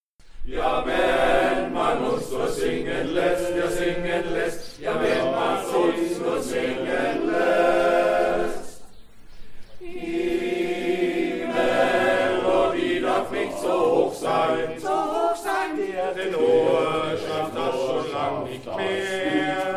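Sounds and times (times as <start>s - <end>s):
verse of a song: 0.3s - 19.7s.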